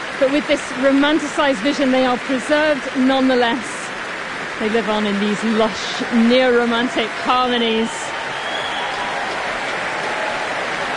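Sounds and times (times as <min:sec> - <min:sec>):
speech: 0:00.2 - 0:03.7, 0:04.6 - 0:08.0
large concert audience applause: 0:04.7 - 0:10.9.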